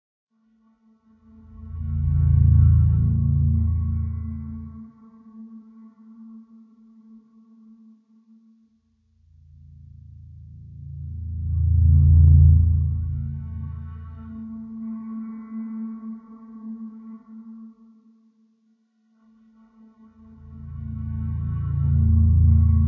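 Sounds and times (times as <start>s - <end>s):
low tension music: 1.0s - 6.3s, 8.8s - 17.8s, 19.2s - 22.8s.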